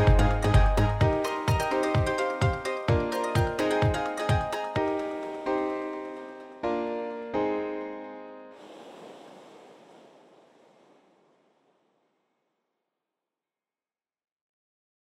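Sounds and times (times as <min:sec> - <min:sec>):
tropical house music: 0:00.0 - 0:07.0.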